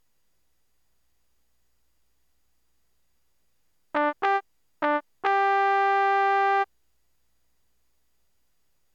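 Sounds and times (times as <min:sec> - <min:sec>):
magic trumpet toot: 0:04.0 - 0:06.7.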